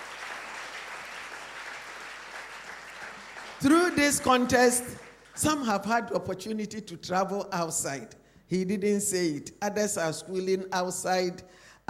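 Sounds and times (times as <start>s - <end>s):
audience clapping: 0.0s - 5.7s
speech: 3.6s - 11.8s.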